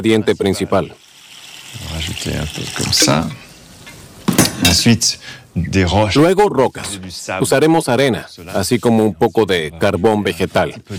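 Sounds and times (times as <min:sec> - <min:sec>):
speech: 0:00.0 - 0:01.0, 0:01.7 - 0:03.4, 0:04.7 - 0:10.9
water being added to a container: 0:01.0 - 0:03.1.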